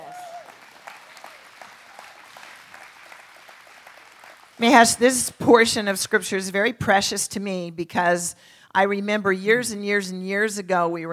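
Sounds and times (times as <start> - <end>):
audience applause: 0.0 - 4.6
speech: 4.6 - 11.1.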